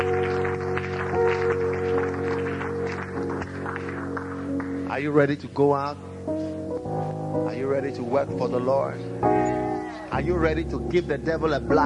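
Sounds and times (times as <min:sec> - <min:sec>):
audience clapping: 0:00.0 - 0:05.4
speech: 0:05.0 - 0:06.4, 0:07.5 - 0:09.5, 0:10.2 - 0:11.8.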